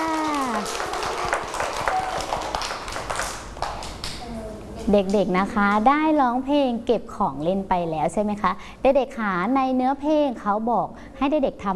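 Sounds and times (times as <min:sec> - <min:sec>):
children clapping for themselves: 0:00.0 - 0:04.2
speech: 0:04.9 - 0:11.7.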